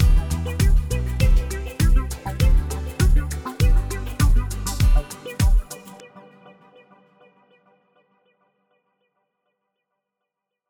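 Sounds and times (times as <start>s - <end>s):
disco duet backing track: 0.0s - 6.0s.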